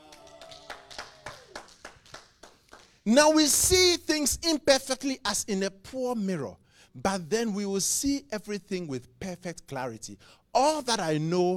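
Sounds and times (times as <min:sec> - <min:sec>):
audience clapping: 0:00.0 - 0:03.1
speech: 0:03.1 - 0:11.5.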